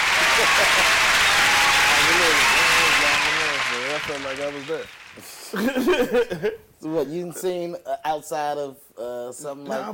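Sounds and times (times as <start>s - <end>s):
scattered voices and cheers: 0.0s - 5.0s
round of applause: 0.0s - 5.7s
speech: 0.4s - 1.2s, 4.0s - 9.9s
laughter: 5.4s - 6.6s.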